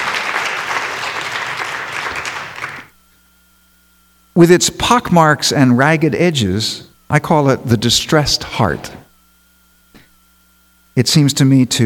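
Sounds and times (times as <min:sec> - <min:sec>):
audience applause: 0:00.0 - 0:02.9
speech: 0:04.4 - 0:09.0, 0:11.0 - 0:11.8.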